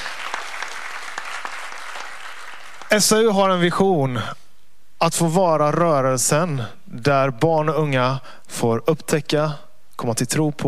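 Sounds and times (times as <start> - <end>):
audience applause: 0.0 - 3.2
speech: 2.9 - 4.4, 5.0 - 10.6.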